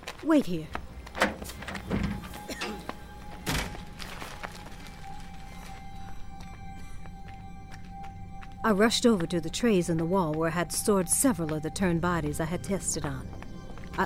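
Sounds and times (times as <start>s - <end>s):
speech: 0.2s - 1.3s, 8.7s - 13.4s
door closing: 1.1s - 3.8s.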